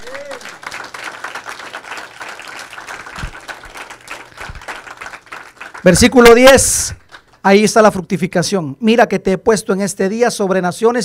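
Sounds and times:
audience applause: 0.0s - 7.4s
speech: 5.8s - 11.0s.

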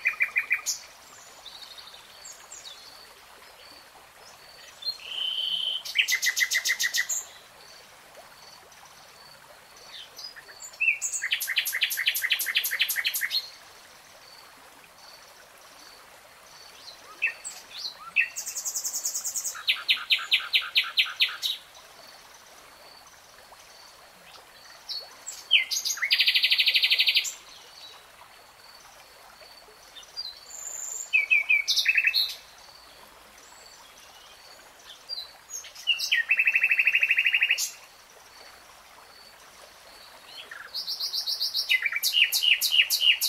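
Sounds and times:
nightingale song: 0.0s - 2.9s, 4.6s - 7.4s, 9.8s - 13.6s, 16.7s - 21.7s, 24.6s - 28.0s, 30.0s - 32.5s, 33.4s - 37.9s, 40.0s - 43.2s.

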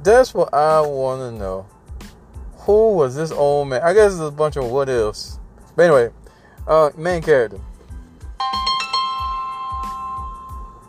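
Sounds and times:
speech: 0.0s - 1.8s, 2.6s - 7.7s
phone ringtone for incoming call: 8.4s - 10.8s.

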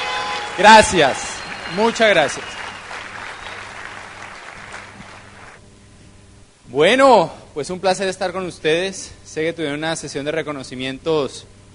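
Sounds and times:
audience applause: 0.0s - 5.6s
speech: 0.6s - 2.6s, 6.7s - 11.6s.

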